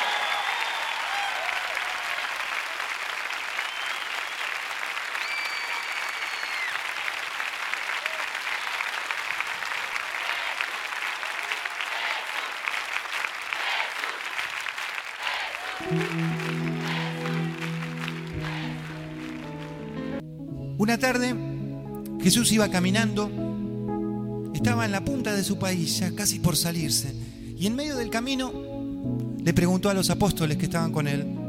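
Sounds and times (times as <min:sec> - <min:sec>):
cheers: 0:00.0 - 0:19.9
big crowd applause: 0:00.0 - 0:20.2
sustained musical tone: 0:15.8 - 0:26.2
speech: 0:20.9 - 0:21.5, 0:22.2 - 0:23.5, 0:24.6 - 0:28.6, 0:29.4 - 0:31.4.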